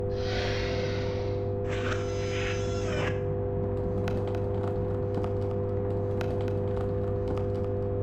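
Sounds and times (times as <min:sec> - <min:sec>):
downgrid charging platform ambience: 0:00.2 - 0:07.9.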